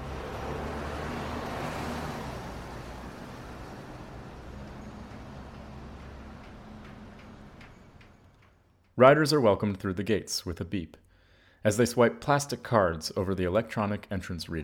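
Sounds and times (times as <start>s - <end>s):
street traffic noise: 0.0s - 8.9s
speech: 9.0s - 11.0s, 11.6s - 14.6s.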